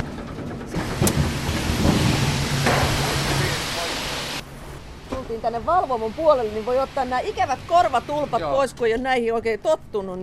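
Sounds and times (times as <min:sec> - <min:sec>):
debarked logs rumbling and clattering on a sawmill conveyor: 0:00.0 - 0:04.0
speech: 0:05.3 - 0:10.2.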